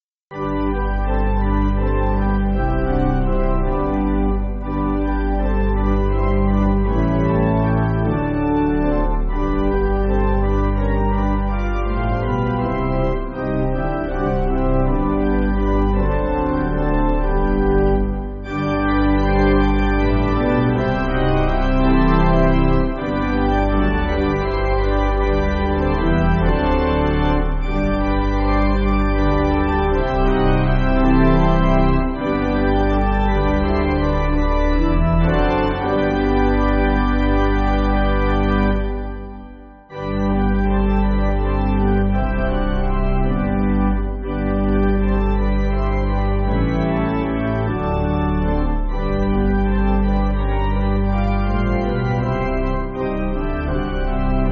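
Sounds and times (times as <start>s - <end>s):
pipe organ: 0.3s - 54.5s.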